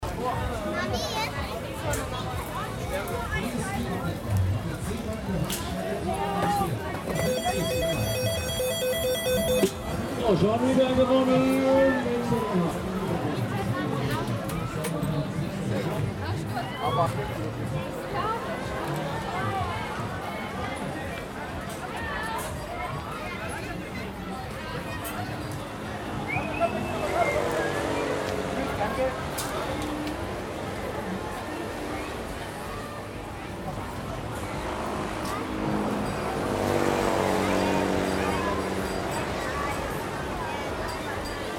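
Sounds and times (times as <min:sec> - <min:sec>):
crowd murmur: 0:00.0 - 0:41.5
announcement: 0:07.1 - 0:10.7.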